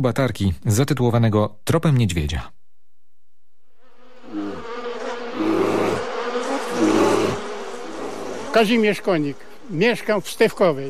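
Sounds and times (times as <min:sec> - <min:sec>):
speech: 0:00.0 - 0:02.6, 0:08.6 - 0:10.8
honey bees buzzing in a swarm: 0:03.7 - 0:10.8.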